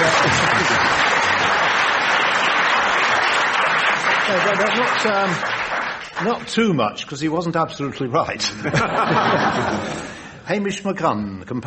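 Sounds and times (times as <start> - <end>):
laughter: 0.0 - 1.6, 8.4 - 10.3
round of applause: 0.0 - 6.6
speech: 4.5 - 5.6, 6.2 - 11.6.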